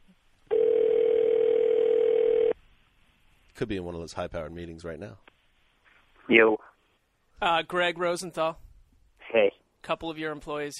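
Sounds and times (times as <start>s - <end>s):
telephone tone while a call is placed: 0.5s - 2.6s
speech: 3.6s - 5.3s, 6.3s - 6.6s, 7.4s - 8.6s, 9.3s - 10.7s.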